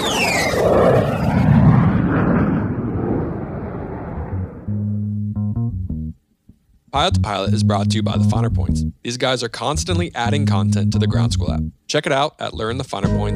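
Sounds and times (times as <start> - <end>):
airplane takeoff roar: 0.0 - 4.9
synthesized music notes: 4.7 - 9.0, 9.8 - 11.8, 13.0 - 13.3
speech: 7.0 - 13.3.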